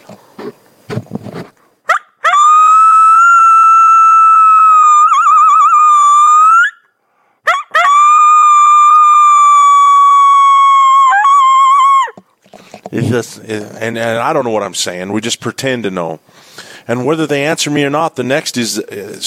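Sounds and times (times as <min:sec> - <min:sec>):
person imitating a lone wolf howl: 0:02.4 - 0:06.8, 0:07.8 - 0:12.2
speech: 0:13.1 - 0:19.2.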